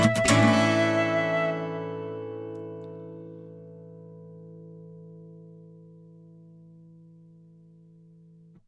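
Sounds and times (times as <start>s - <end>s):
instrumental music: 0.0s - 5.5s.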